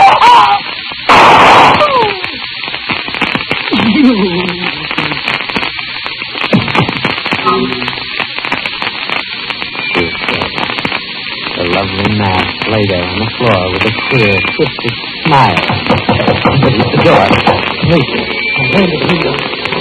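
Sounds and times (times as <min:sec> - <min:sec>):
crackling static: 0:00.0 - 0:19.7
gunshot: 0:06.5 - 0:07.1, 0:15.6 - 0:18.1.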